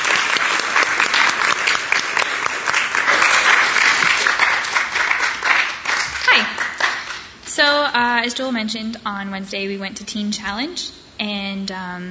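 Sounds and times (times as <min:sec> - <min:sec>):
audience applause: 0:00.0 - 0:07.3
speech: 0:07.6 - 0:12.0.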